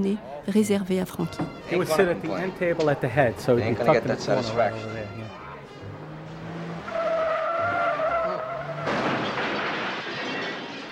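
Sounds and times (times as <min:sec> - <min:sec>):
speech: 0:00.0 - 0:05.4
car tires screeching: 0:01.6 - 0:10.8
car struck and exploding: 0:07.9 - 0:10.8.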